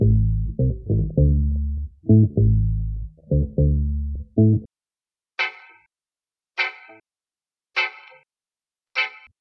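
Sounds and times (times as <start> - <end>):
guitar loops: 0.0 - 4.7, 5.4 - 5.8, 6.6 - 7.0, 7.8 - 8.2.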